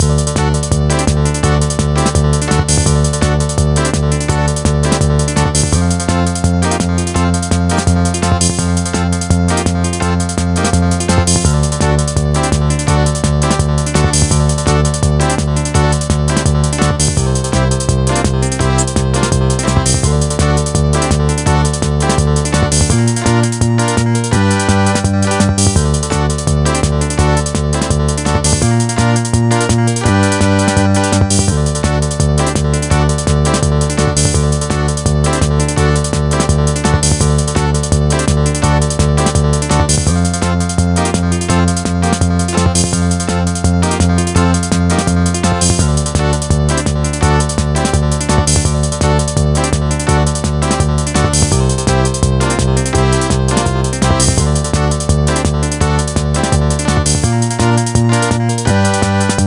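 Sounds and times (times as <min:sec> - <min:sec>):
bonus game tune: 0:00.0 - 0:59.4.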